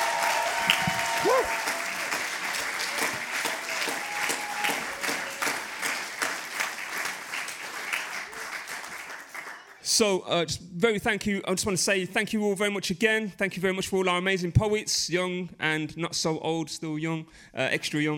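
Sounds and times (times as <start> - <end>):
whistles and cheers: 0.0 - 6.0
crowd applauding: 0.0 - 9.8
speech: 1.2 - 1.7, 10.0 - 18.1.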